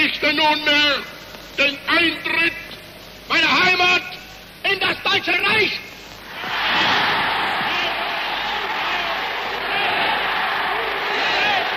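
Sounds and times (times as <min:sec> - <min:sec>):
speech: 0:00.1 - 0:02.7, 0:03.3 - 0:07.0
crowd cheering: 0:06.3 - 0:11.7.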